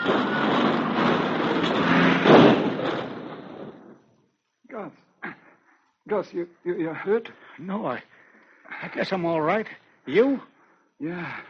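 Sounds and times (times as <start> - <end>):
car skidding and overturning on a snow-covered road: 0.0 - 4.1
speech: 6.1 - 8.1, 8.7 - 11.4.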